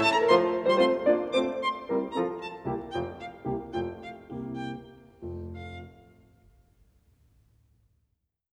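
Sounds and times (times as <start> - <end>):
violin sonata scherzo in F major: 0.0 - 6.4.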